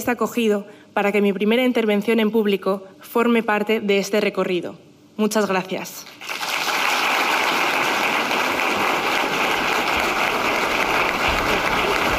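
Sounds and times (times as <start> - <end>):
speech: 0.0 - 6.2
auditorium applause: 6.2 - 12.1.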